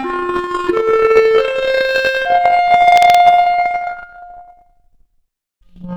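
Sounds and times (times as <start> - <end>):
clarinet arpeggio: 0.3 - 4.4.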